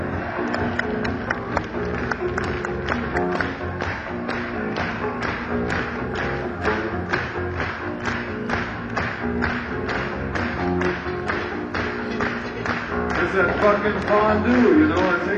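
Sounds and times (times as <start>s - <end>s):
continuous musical backing: 0.0s - 15.3s
crowd clapping along in rhythm: 0.0s - 15.3s
speech: 13.7s - 15.3s.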